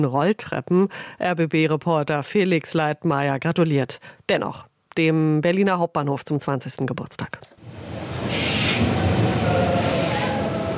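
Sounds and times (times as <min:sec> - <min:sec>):
speech: 0:00.0 - 0:09.1
ICE train from Leipzig slowly pulling into platform 6: 0:07.6 - 0:10.7.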